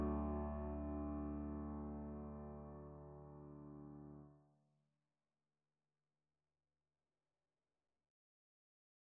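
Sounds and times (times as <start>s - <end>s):
piano fugue: 0.0s - 4.2s.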